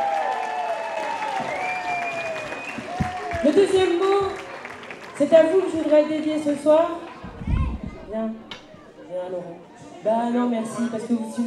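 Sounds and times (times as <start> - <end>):
audience applause: 0.0 - 8.1
faint whistling tones: 1.4 - 3.0
speech: 3.4 - 4.4, 5.2 - 7.0, 8.1 - 8.4, 9.2 - 11.4.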